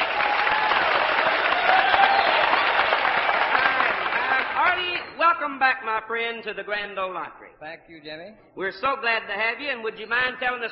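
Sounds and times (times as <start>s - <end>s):
audience applause: 0.0s - 5.2s
speech: 5.5s - 10.7s.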